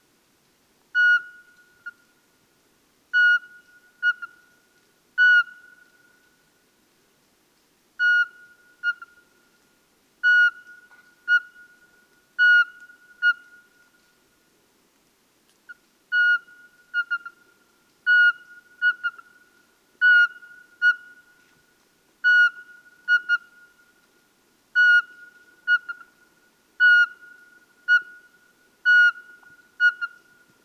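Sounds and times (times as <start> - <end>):
Eurasian pygmy owl calling: 0.9 - 2.0, 3.1 - 4.5, 5.2 - 6.3, 8.0 - 9.3, 10.2 - 13.8, 15.7 - 21.3, 22.2 - 23.8, 24.8 - 26.2, 26.8 - 30.5.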